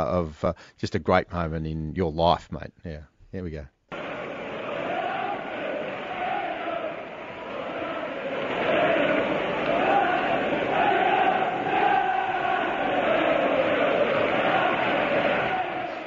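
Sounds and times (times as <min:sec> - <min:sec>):
speech: 0:00.0 - 0:03.8
football stadium crowd chanting a player's name: 0:03.9 - 0:16.0.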